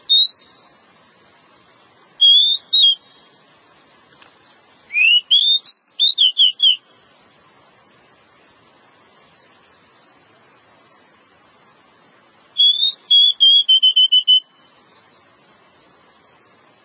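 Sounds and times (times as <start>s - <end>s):
Java sparrow song of clear slurred whistles and chips: 0.1s - 0.6s, 2.2s - 3.3s, 4.9s - 6.8s, 12.6s - 14.6s.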